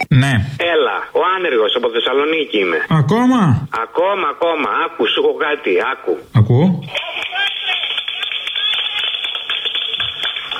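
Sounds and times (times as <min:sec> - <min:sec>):
speech: 0:00.2 - 0:00.6, 0:01.4 - 0:07.1
hand clapping: 0:06.9 - 0:10.5.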